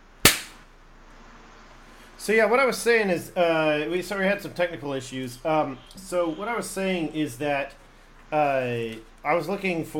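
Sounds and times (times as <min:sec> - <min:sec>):
hand clap to sync recording: 0:00.3 - 0:00.6
speech: 0:02.2 - 0:09.9.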